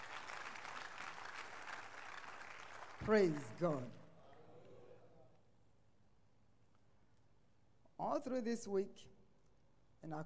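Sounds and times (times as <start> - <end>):
audience clapping: 0.0 - 4.0
speech: 3.0 - 4.0, 8.0 - 9.1, 10.0 - 10.2.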